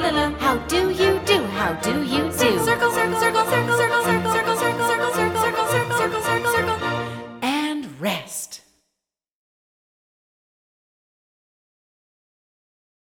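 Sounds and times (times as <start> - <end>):
vocal symphony arrangement: 0.0 - 8.5.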